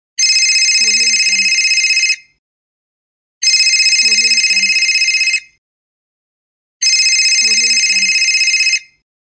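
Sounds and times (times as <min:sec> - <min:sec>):
telephone: 0:00.2 - 0:02.2, 0:03.4 - 0:05.6, 0:06.8 - 0:09.0.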